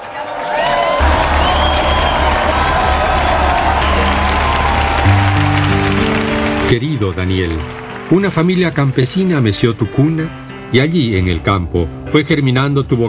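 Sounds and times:
audience applause: 0.0s - 9.0s
speech: 6.7s - 13.0s.

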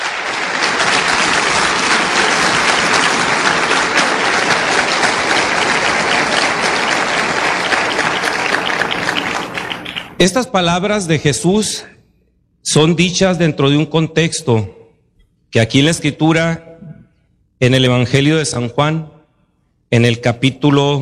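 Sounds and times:
loud audience applause: 0.0s - 10.2s
speech: 10.2s - 12.0s, 12.6s - 14.8s, 15.5s - 16.7s, 17.6s - 19.1s, 19.9s - 21.0s.

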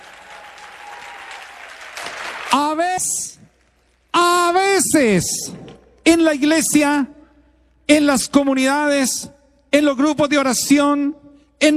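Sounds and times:
shrill whoop: 0.0s - 2.0s
people cheering: 0.0s - 2.8s
audience clapping: 0.0s - 4.4s
speech: 2.5s - 3.5s, 4.5s - 7.2s, 7.9s - 11.7s.

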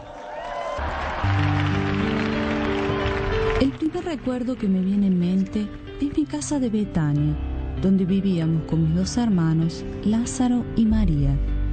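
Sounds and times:
crowd applause: 0.0s - 5.6s
sustained low musical tones: 0.8s - 11.7s
speech: 3.6s - 11.5s.

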